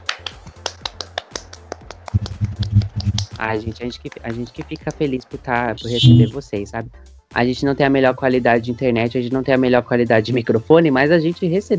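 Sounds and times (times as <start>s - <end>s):
sharp hand claps: 0.0s - 6.4s
speech: 3.4s - 11.7s.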